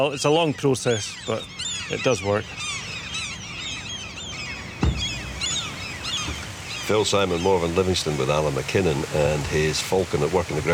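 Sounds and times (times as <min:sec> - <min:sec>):
speech: 0:00.0 - 0:02.7, 0:06.9 - 0:10.7
gulls and oystercatchers calling in alarm: 0:00.0 - 0:10.7
low thump: 0:04.8 - 0:06.8.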